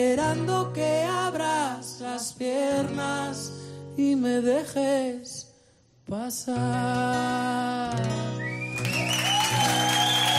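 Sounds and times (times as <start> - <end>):
speech: 0.0 - 5.4, 6.1 - 10.1
audience applause after acoustic song: 8.8 - 10.3.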